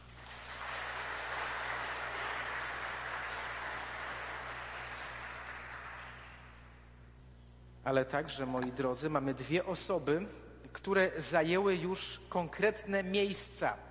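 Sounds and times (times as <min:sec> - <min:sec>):
audience applause: 0:00.0 - 0:06.6
speech: 0:07.9 - 0:13.8.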